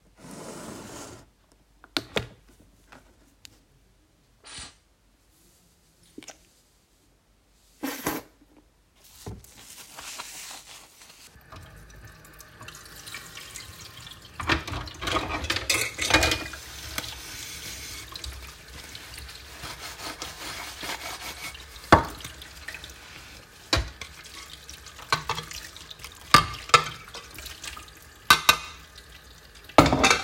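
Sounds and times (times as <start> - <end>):
dishes being washed: 11.3 - 30.2.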